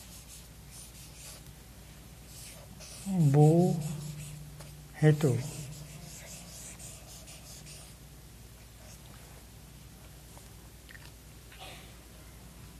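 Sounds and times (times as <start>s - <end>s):
elderly monk writing on a board: 0.0s - 1.4s, 2.3s - 8.0s
speech: 3.1s - 3.9s, 5.0s - 5.6s.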